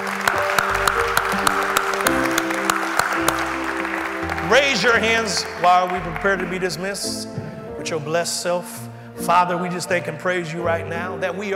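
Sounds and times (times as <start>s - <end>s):
audience applauding: 0.0s - 7.3s
sustained keyboard chords: 0.0s - 11.5s
speech: 4.5s - 11.5s.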